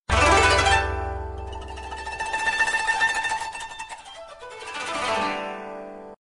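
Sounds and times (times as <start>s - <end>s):
Japanese melody: 0.1s - 5.4s.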